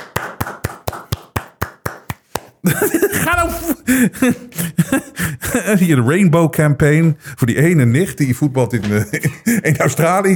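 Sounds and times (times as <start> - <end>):
clapping: 0.0 - 2.6
speech: 2.6 - 5.0, 5.6 - 10.3
laughter: 2.6 - 6.1, 8.7 - 10.3.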